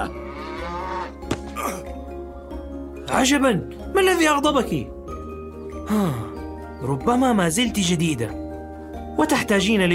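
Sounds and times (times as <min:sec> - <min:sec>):
cow mooing in a barn as it is being milked: 0:00.0 - 0:01.2
speech: 0:03.1 - 0:05.0, 0:05.9 - 0:08.4, 0:09.2 - 0:09.9.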